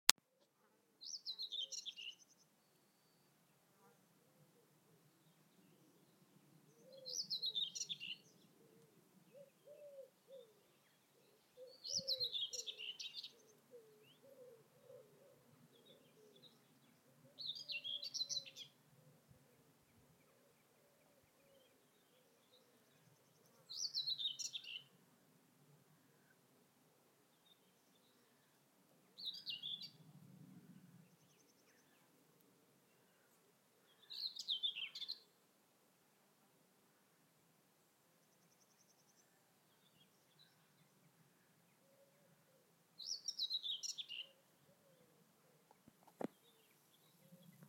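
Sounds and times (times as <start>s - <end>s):
whitethroat singing: 1.0s - 3.9s, 5.1s - 25.0s, 27.3s - 30.0s, 30.6s - 32.2s, 32.9s - 35.4s, 38.2s - 47.6s.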